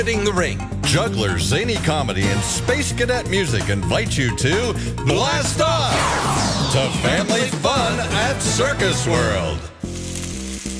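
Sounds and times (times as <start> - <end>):
speech: 0.0 - 9.7
steak searing in its juices on a Weber Searwood pellet grill: 9.8 - 10.7.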